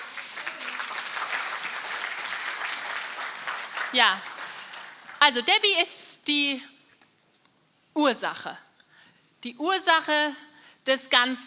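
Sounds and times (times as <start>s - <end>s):
audience applause: 0.0s - 5.2s
speech: 3.9s - 4.3s, 5.2s - 6.7s, 8.0s - 8.6s, 9.4s - 11.4s.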